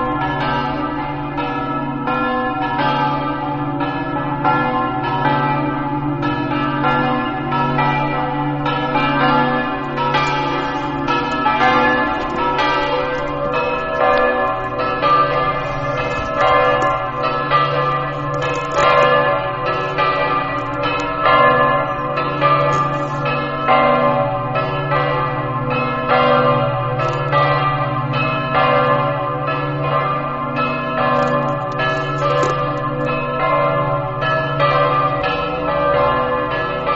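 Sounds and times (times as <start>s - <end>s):
church bells in Aquileia: 0.0s - 36.9s.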